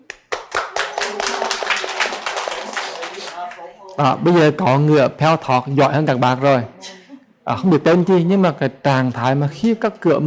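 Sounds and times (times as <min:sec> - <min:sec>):
audience applause: 0:00.3 - 0:03.4
speech: 0:03.6 - 0:06.8, 0:07.5 - 0:10.2.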